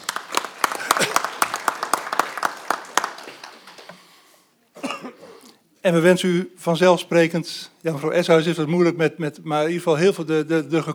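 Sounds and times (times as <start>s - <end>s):
audience applause: 0.0s - 4.3s
speech: 5.8s - 10.9s.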